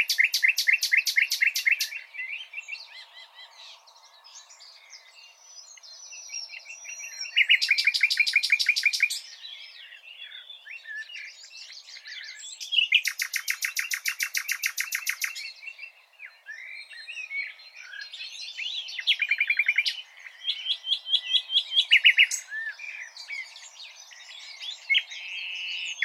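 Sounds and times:
common nightingale song: 0.0s - 26.0s.

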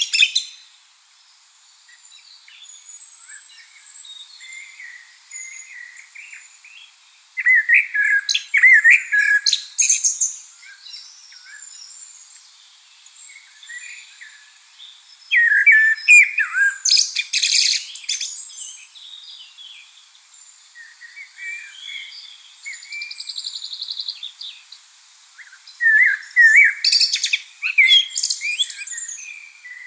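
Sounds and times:
common blackbird song: 0.0s - 29.8s
softer birdsong: 0.0s - 29.8s.

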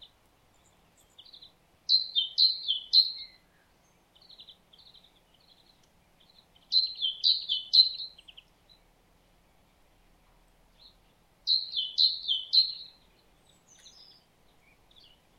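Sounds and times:
great tit Parus major calls: 0.0s - 8.8s, 10.8s - 15.3s.

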